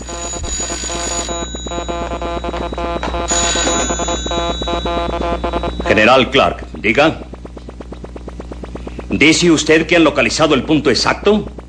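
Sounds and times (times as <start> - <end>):
telephone ringing with a rapid metallic bell trill: 0.0 - 6.2
speech: 6.0 - 7.3, 9.1 - 11.6.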